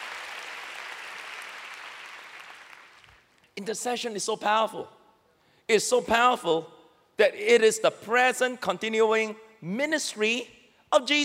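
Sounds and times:
crowd applauding: 0:00.0 - 0:03.3
speech: 0:03.6 - 0:05.0, 0:05.7 - 0:11.2.

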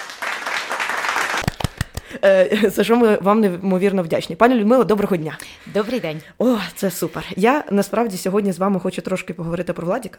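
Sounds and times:
applause sound effect: 0:00.0 - 0:02.1
speech: 0:02.2 - 0:10.1.

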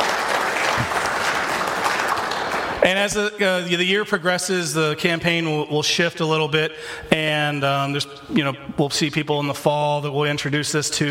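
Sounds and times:
crowd applauding: 0:00.0 - 0:02.9
speech: 0:02.8 - 0:11.0.

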